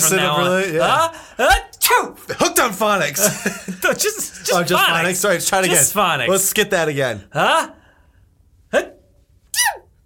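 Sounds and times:
laughter: 0.0s - 1.1s, 2.4s - 5.9s
speech: 0.0s - 7.8s, 8.7s - 9.0s
high-pitched sneeze: 8.8s - 9.9s.

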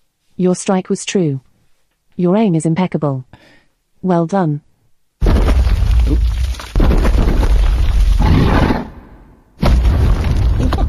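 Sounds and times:
speech: 0.4s - 1.5s, 2.2s - 4.7s
rock creature crumbling apart in a game: 5.2s - 8.8s, 9.6s - 10.8s.

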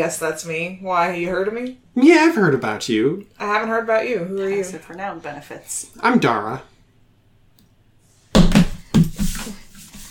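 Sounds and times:
speech: 0.0s - 6.7s
hand slapping a table: 8.4s - 9.6s.

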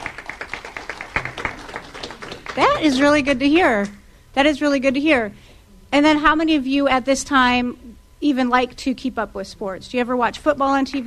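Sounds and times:
small group applauding: 0.0s - 3.2s
speech: 2.6s - 11.0s.

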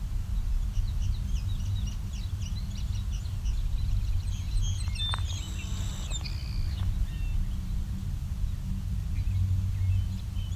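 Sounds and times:
other birds singing faintly: 0.1s - 10.5s
Savannah Sparrow song: 1.0s - 7.6s.

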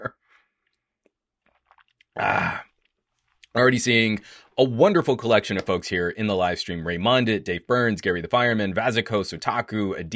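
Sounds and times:
person sipping water: 0.2s - 3.6s
speech: 2.2s - 2.6s, 3.6s - 10.1s
breathy exhale: 4.2s - 4.6s.

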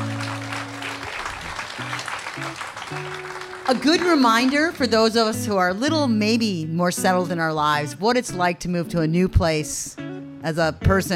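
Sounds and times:
audience applause: 0.0s - 4.9s
speech: 3.7s - 11.1s.

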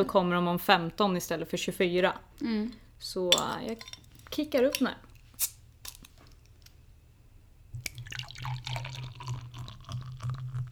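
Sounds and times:
speech: 0.0s - 5.6s
beer pouring into a glass: 7.8s - 10.7s.

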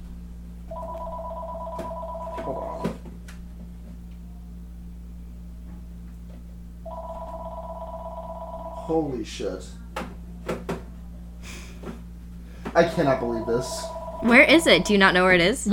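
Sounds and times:
constant low hum: 0.0s - 15.7s
electronic phone ringing from its dock at a shop register: 0.7s - 3.0s, 6.8s - 9.0s, 12.8s - 15.3s
speech: 2.5s - 2.9s, 8.9s - 9.8s, 12.8s - 15.7s.

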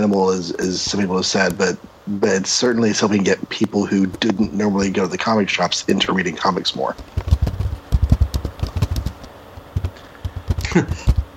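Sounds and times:
speech: 0.0s - 7.2s, 10.8s - 11.1s
keyboard typing: 7.0s - 11.3s.

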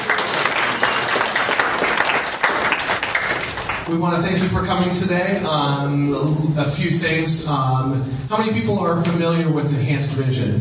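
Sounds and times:
audience applause: 0.0s - 4.0s
speech: 3.9s - 10.5s.

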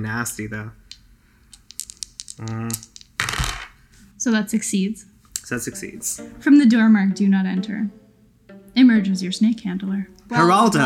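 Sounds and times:
speech: 0.0s - 0.8s, 2.4s - 2.9s, 4.2s - 8.0s, 8.8s - 10.8s
dice rolling: 0.9s - 3.8s.

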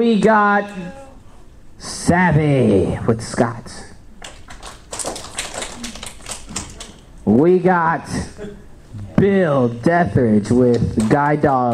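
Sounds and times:
speech: 0.0s - 1.0s, 1.8s - 3.9s, 7.2s - 11.7s
audience clapping: 4.2s - 7.1s.

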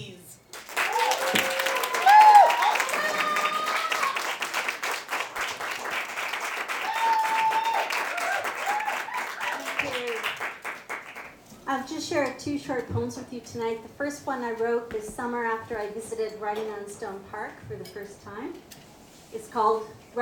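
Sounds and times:
crowd applause: 0.5s - 11.4s
scattered voices and cheers: 1.0s - 4.2s
speech: 12.4s - 18.7s, 19.3s - 20.2s.

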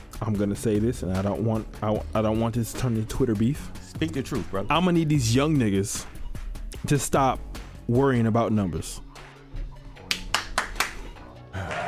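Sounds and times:
speech: 0.2s - 6.2s, 6.8s - 9.1s
sharp hand claps: 10.0s - 11.8s.

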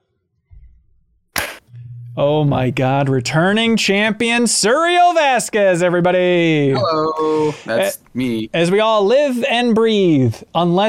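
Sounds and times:
hand clap: 1.4s - 1.6s
speech: 2.2s - 10.8s.

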